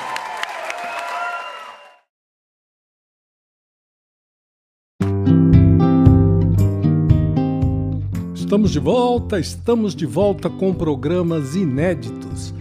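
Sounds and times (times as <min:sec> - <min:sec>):
audience applause: 0:00.0 - 0:02.1
music: 0:05.0 - 0:12.5
speech: 0:08.5 - 0:12.5.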